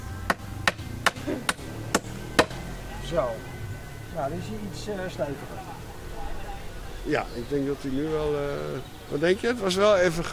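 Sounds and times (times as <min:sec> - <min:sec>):
hammering a nail into a wooden chair: 0:00.3 - 0:02.6
speech: 0:03.1 - 0:03.6, 0:04.2 - 0:05.8, 0:07.0 - 0:10.3.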